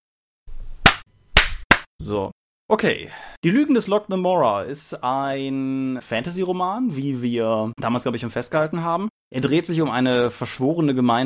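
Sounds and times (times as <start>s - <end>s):
single hand clap: 0.8s - 1.9s
speech: 2.1s - 11.2s.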